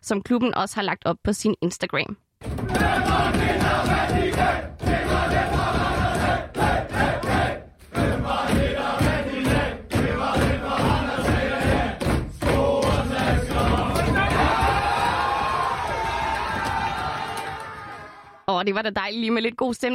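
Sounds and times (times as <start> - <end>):
speech: 0.0 - 5.8, 18.6 - 19.9
rhythmic thumps: 2.4 - 16.8
team singing victory song in locker room: 2.6 - 15.6.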